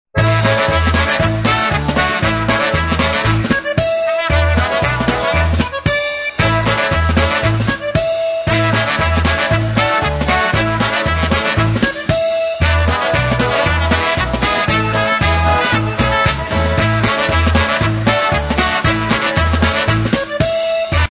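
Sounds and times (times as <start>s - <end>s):
polka music: 0.1s - 21.0s.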